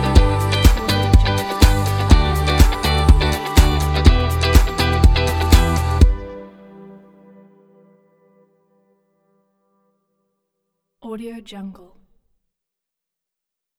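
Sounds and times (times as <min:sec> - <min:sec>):
energetic upbeat uplifting inspiring pop music: 0:00.0 - 0:06.8.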